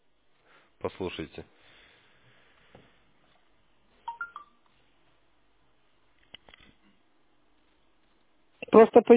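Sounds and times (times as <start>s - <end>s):
speech: 0.8s - 1.6s, 8.8s - 9.1s
telephone keypad beeps in tone mode: 4.1s - 4.6s.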